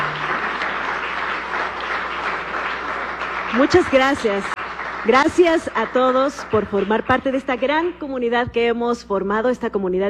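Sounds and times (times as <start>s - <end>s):
audience applause: 0.0s - 7.1s
speech: 3.6s - 10.0s.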